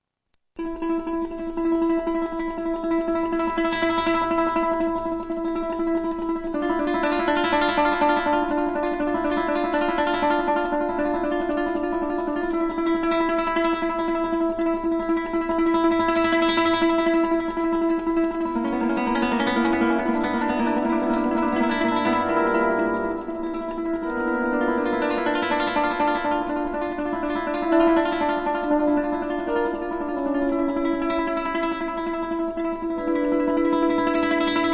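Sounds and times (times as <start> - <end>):
strumming: 0.6 - 34.7.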